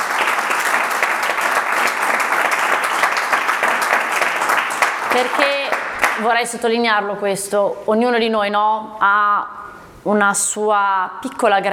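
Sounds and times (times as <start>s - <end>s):
audience applause: 0.0s - 6.3s
speech: 5.2s - 11.7s.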